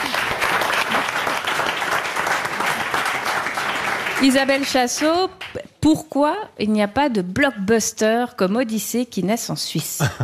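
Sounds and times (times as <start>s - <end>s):
audience applause: 0.0s - 5.6s
speech: 4.2s - 10.2s.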